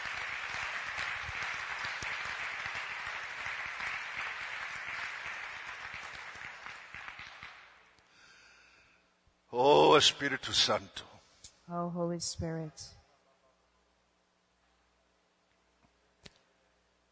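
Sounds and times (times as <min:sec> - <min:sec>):
audience clapping: 0:00.0 - 0:08.0
speech: 0:09.6 - 0:11.1, 0:11.7 - 0:13.0.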